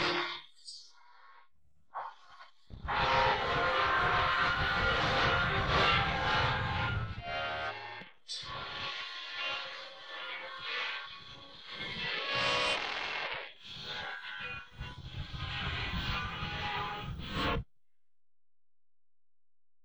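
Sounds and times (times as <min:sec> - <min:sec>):
guitar: 0:00.0 - 0:00.4, 0:02.8 - 0:17.6.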